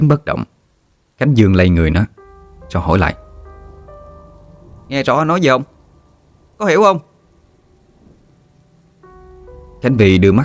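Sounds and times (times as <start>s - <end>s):
speech: 0.0s - 0.6s, 1.2s - 3.2s, 4.9s - 5.7s, 6.6s - 7.1s, 9.8s - 10.4s
light rain: 0.0s - 10.4s
thunder: 7.9s - 8.4s.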